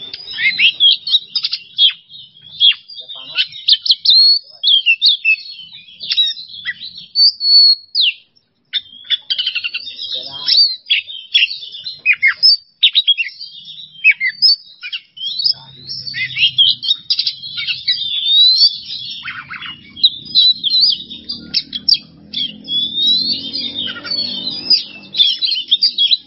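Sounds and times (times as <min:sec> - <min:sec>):
Oriental magpie-robin song: 0:00.0 - 0:26.2.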